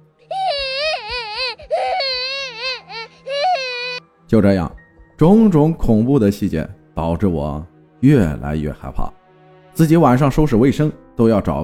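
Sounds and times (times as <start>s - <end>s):
child crying: 0.3s - 4.0s
speech: 4.3s - 9.2s, 9.8s - 11.6s.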